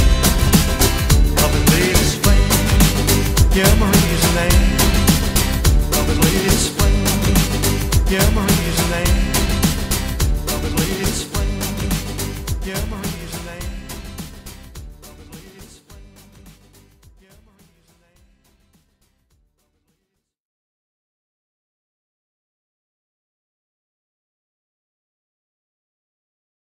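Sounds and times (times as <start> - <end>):
shuffle dance remix: 0.0 - 18.4.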